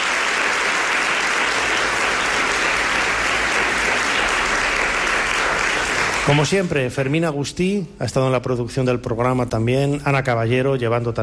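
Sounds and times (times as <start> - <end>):
audience applause: 0.0 - 7.0
speech: 6.3 - 11.2.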